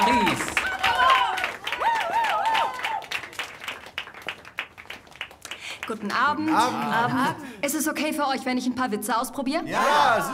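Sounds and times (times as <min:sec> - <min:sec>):
high whooping cheers: 0:00.0 - 0:03.3
audience applause: 0:00.0 - 0:07.2
speech: 0:05.9 - 0:10.3.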